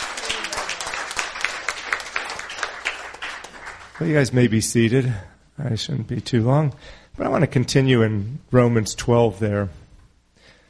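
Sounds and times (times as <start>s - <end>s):
audience cheering: 0.0s - 3.2s
audience clapping: 0.0s - 4.5s
speech: 4.0s - 9.8s.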